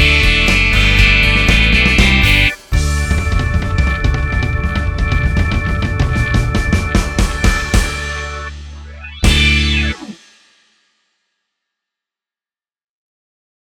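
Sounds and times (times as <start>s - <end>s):
rock amp: 0.0s - 10.3s.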